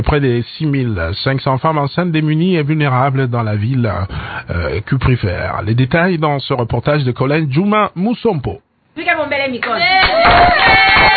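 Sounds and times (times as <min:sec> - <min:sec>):
speech: 0:00.0 - 0:09.9
women clapping at a prenatal consultation session: 0:09.6 - 0:11.1
women cheering at a prenatal consultation session: 0:09.7 - 0:11.1.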